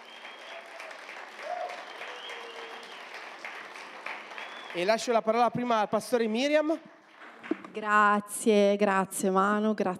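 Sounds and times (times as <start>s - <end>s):
church audience applause: 0.0s - 5.4s
speech: 4.7s - 7.0s, 7.7s - 9.9s.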